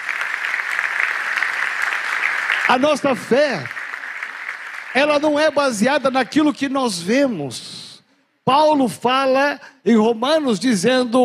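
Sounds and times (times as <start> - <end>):
loud audience applause: 0.0 - 5.8
speech: 2.7 - 3.8, 4.9 - 7.8, 8.5 - 11.2.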